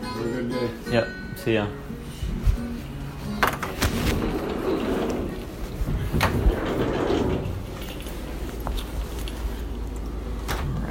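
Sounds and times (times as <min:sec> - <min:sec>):
speech: 0:00.5 - 0:01.9
shuffling movement: 0:02.0 - 0:10.4
door opening: 0:03.4 - 0:09.0.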